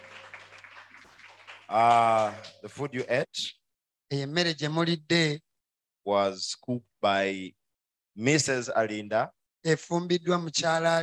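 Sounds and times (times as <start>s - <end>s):
audience clapping for the cooks: 0.0s - 3.3s
speech: 1.7s - 5.4s, 6.0s - 7.6s, 8.2s - 11.0s.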